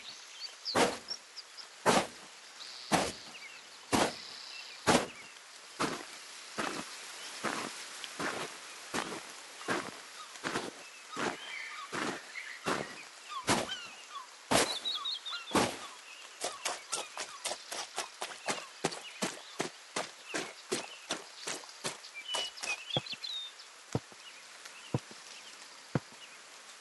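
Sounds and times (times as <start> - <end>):
footsteps: 0.8 - 1.1, 1.9 - 2.3, 2.9 - 3.3, 3.9 - 4.2, 4.9 - 5.2, 5.8 - 13.9, 14.5 - 14.9, 15.5 - 23.2, 25.0 - 25.2, 26.0 - 26.2.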